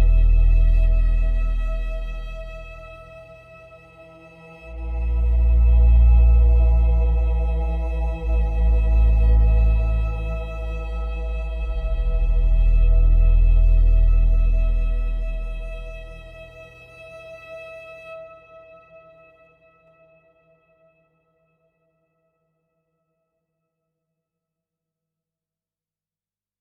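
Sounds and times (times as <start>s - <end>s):
mysterious drone: 0.0s - 3.2s, 4.0s - 16.8s.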